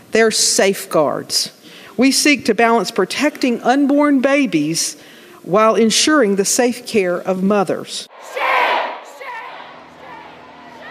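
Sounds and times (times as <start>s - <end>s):
speech: 0.2s - 8.4s
protesters screaming shame in gallery: 8.2s - 10.9s.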